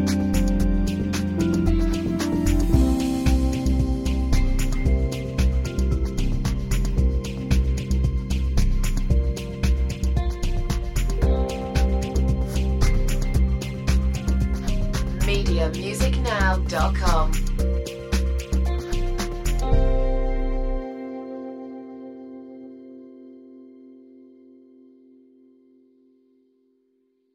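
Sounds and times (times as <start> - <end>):
corporate adventure music: 0.0 - 20.8.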